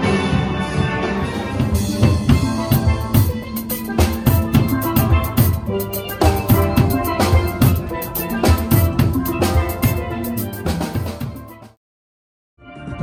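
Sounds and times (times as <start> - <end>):
steelband playing an island groove: 0.0 - 11.8.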